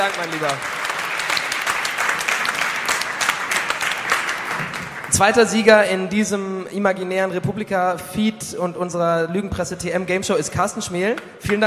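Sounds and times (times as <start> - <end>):
speech: 0.0 - 0.8, 5.1 - 11.6
sustained audience applause: 0.0 - 5.6.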